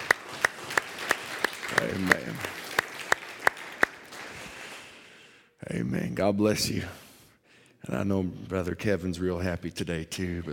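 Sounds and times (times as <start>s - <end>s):
audience applauding: 0.0s - 5.1s
speech: 1.8s - 2.6s, 5.7s - 7.0s, 7.8s - 10.5s.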